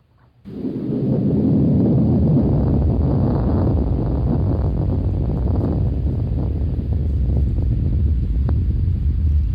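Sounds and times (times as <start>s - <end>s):
undersea earthquake recorded by hydrophone: 0.5s - 9.5s.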